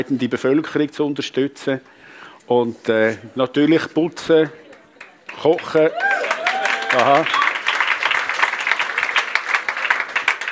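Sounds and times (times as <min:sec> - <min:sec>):
speech: 0:00.0 - 0:04.6, 0:05.3 - 0:06.1, 0:06.9 - 0:07.4
audience applause: 0:05.3 - 0:10.5.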